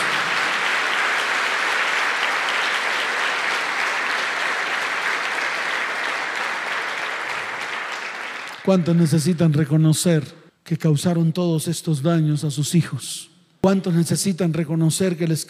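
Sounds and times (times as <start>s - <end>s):
audience applause: 0.0s - 8.7s
speech: 8.7s - 15.4s.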